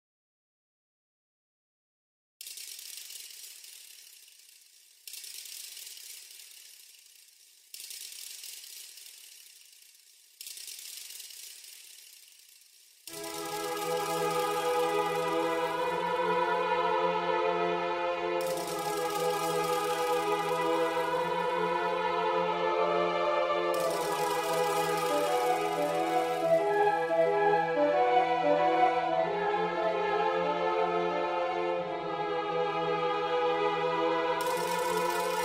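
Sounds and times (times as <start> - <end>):
orchestra: 13.2 - 35.4.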